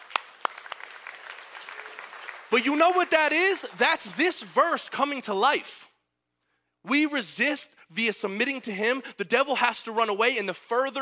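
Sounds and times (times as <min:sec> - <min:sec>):
audience clapping: 0:00.0 - 0:05.6
speech: 0:02.5 - 0:05.9, 0:06.8 - 0:10.9.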